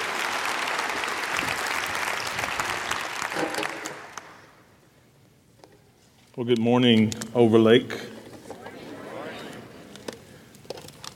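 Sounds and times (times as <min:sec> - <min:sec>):
audience applauding to welcome a speaker at Overlake: 0:00.0 - 0:04.7
speech: 0:06.4 - 0:08.1.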